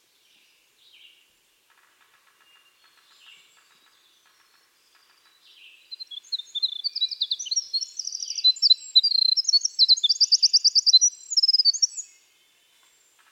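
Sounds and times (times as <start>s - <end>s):
winter wren Troglodytes hiemalis singing trills: 5.3s - 12.2s.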